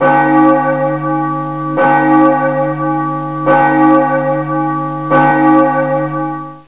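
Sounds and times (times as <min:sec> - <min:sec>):
bell: 0:00.0 - 0:06.6.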